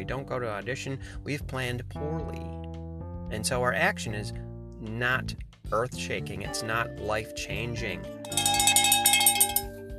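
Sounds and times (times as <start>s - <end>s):
speech: 0.0s - 2.6s, 3.3s - 8.4s
bell-like notification chime with overlapping metallic tones: 8.3s - 9.7s.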